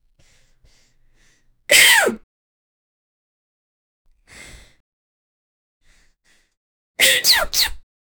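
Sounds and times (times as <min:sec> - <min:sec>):
person sneezing: 0:01.7 - 0:02.2, 0:07.0 - 0:07.8.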